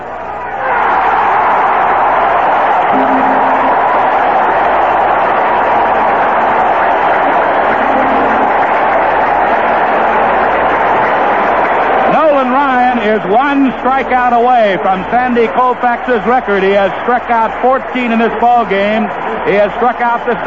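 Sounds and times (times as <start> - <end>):
stadium crowd cheering, standing ovation: 0.0 - 20.4
speech: 13.2 - 20.4.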